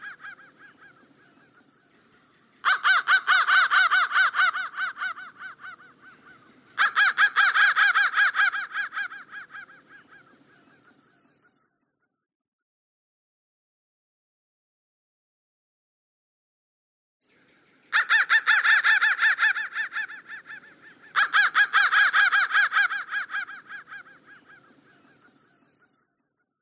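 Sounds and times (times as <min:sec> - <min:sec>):
crow cawing: 0:00.0 - 0:01.1, 0:02.6 - 0:11.0, 0:17.9 - 0:25.3.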